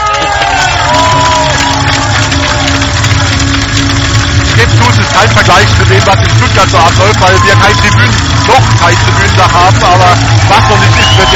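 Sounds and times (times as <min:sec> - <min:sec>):
stadium crowd roaring as the team runs in: 0:00.0 - 0:11.3
speech: 0:05.5 - 0:11.3
high whistles from the crowd: 0:10.7 - 0:11.3.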